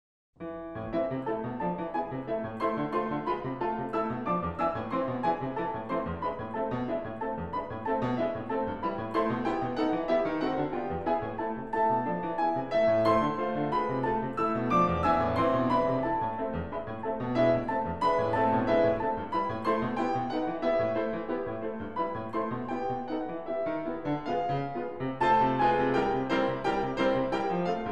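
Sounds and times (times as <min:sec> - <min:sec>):
piano etude in A minor: 0:00.4 - 0:27.9.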